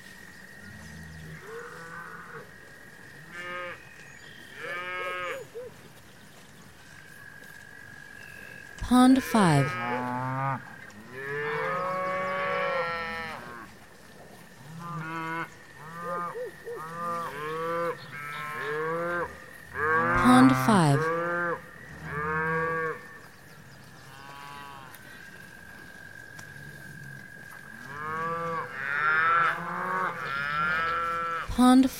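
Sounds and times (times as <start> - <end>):
speech: 8.9 - 9.8
cows mooing: 9.2 - 13.7, 14.8 - 23.2, 24.1 - 25.0, 27.8 - 31.5.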